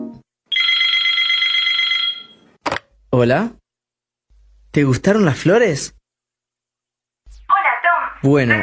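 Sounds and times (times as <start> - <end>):
phone ringing: 0.5 - 2.6
speech: 3.2 - 3.6, 4.7 - 6.0, 8.2 - 8.6.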